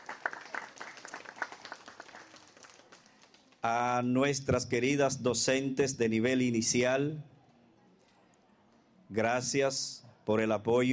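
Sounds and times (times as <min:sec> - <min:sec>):
crowd applauding: 0:00.0 - 0:03.6
speech: 0:03.6 - 0:07.3, 0:09.1 - 0:10.9.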